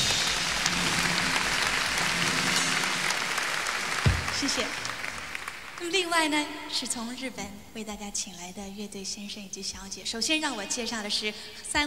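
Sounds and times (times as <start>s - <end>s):
audience applause: 0.0s - 6.4s
speech: 4.4s - 4.9s, 5.8s - 11.8s.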